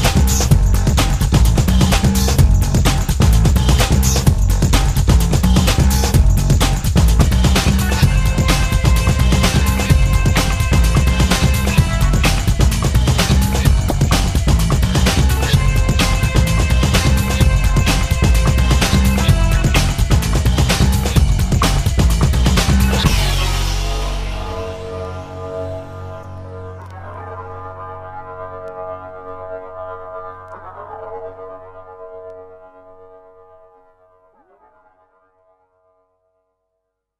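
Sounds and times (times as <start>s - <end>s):
helicopter music: 0.0s - 27.6s.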